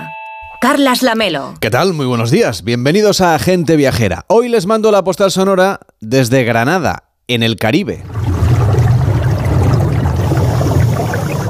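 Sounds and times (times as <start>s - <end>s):
speech: 0.6s - 8.2s
faint bubbling underwater: 8.0s - 11.4s
underwater low rumble while diving off Grenada: 8.0s - 11.4s
watery hiss: 8.2s - 11.4s.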